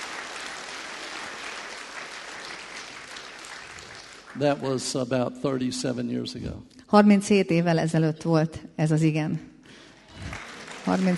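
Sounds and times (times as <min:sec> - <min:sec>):
congregation applause at a church service: 0:00.0 - 0:05.2, 0:09.7 - 0:11.1
speech: 0:04.4 - 0:09.5, 0:10.9 - 0:11.1.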